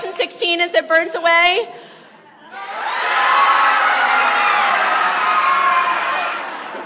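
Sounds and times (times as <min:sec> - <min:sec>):
speech: 0:00.2 - 0:01.9
group giving a primal scream: 0:02.5 - 0:06.8.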